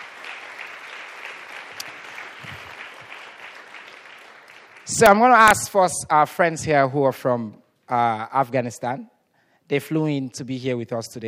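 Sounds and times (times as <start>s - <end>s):
crowd applauding: 0.0s - 5.5s
speech: 4.9s - 9.1s, 9.7s - 11.2s.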